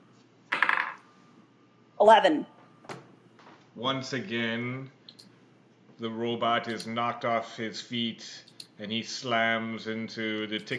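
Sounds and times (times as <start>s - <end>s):
dice being rolled: 0.5s - 1.1s
speech: 2.0s - 2.5s, 3.8s - 5.0s, 6.0s - 10.7s.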